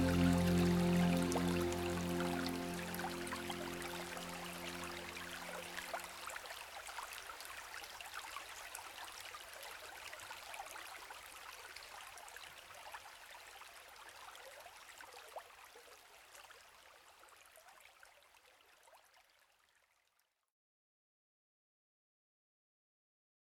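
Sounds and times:
cello: 0.0s - 5.6s.

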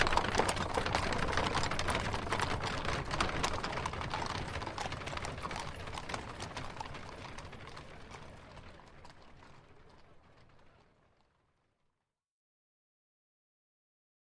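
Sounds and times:
horse-drawn carriage moving very slowly: 0.0s - 11.4s.

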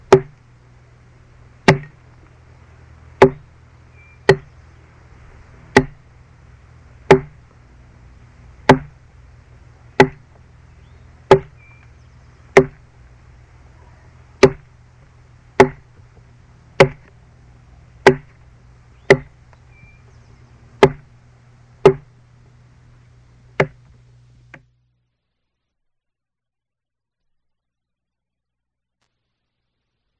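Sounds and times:
chopping a tree: 0.0s - 0.4s, 1.6s - 2.0s, 3.2s - 3.5s, 4.3s - 4.6s, 5.7s - 6.0s, 7.0s - 7.5s, 8.6s - 9.0s, 10.0s - 10.4s, 11.3s - 11.7s, 12.5s - 12.9s, 14.4s - 14.7s, 15.6s - 16.2s, 16.8s - 17.1s, 18.0s - 18.4s, 19.1s - 19.4s, 20.8s - 21.1s, 21.8s - 22.1s, 23.6s - 23.9s.

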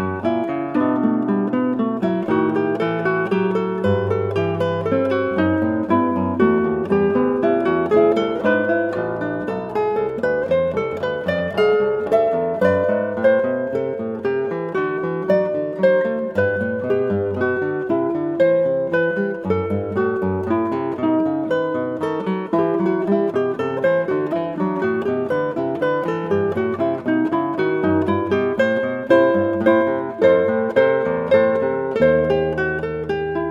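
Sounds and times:
classical prelude on an 8 string guitar: 0.0s - 33.5s.

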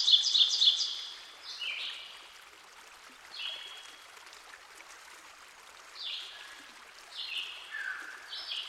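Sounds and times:
ovenbird song: 0.0s - 2.0s, 7.2s - 8.6s.

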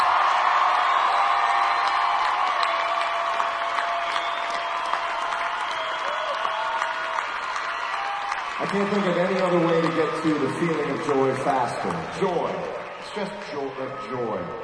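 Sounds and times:
whoops and shouts: 0.0s - 8.6s
audience clapping for a band on stage: 0.0s - 14.4s
speech: 8.6s - 14.6s.

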